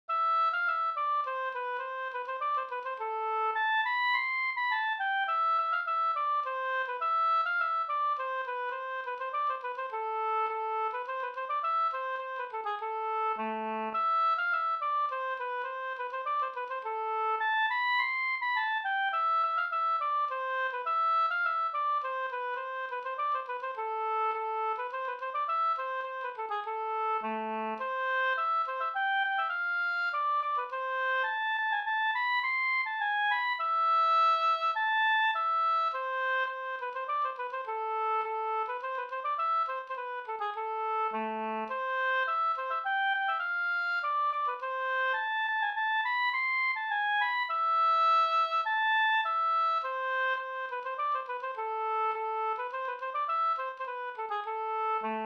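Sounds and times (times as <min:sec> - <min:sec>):
slängpolska folk dance tune: 0:00.1 - 0:55.2.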